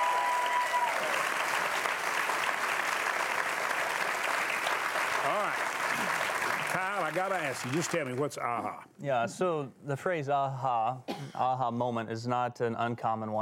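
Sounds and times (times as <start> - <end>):
studio audience applause welcoming guests on a television talk show: 0.0 - 8.6
speech: 7.2 - 13.3.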